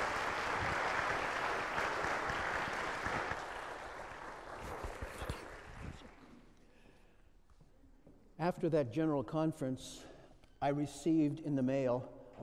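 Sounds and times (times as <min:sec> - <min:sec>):
church audience applause welcoming a guest speaker: 0:00.0 - 0:06.3
speech: 0:08.5 - 0:12.2.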